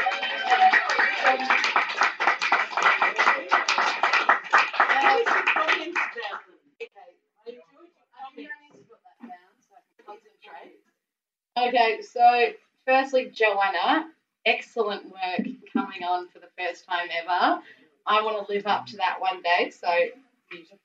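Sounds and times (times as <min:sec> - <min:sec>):
round of applause: 0:00.0 - 0:06.5
speech: 0:01.2 - 0:01.8, 0:11.7 - 0:20.8.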